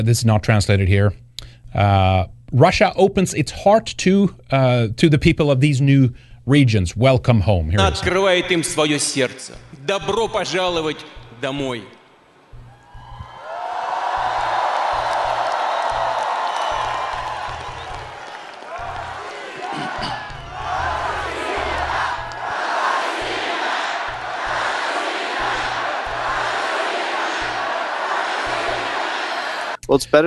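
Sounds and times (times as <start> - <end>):
speech: 0.0 - 12.0, 29.9 - 30.2
crowd of tens of thousands cheering at a rally on Red Square in Moscow: 7.8 - 9.0, 10.0 - 29.8.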